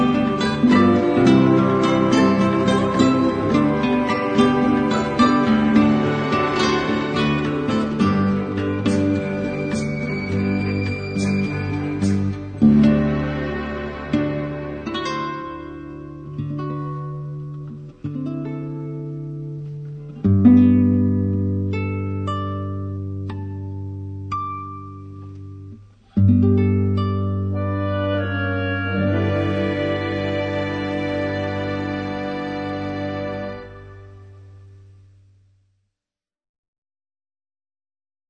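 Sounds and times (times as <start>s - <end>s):
orchestra: 0.0s - 16.9s, 27.5s - 34.7s
guitar: 0.0s - 35.5s.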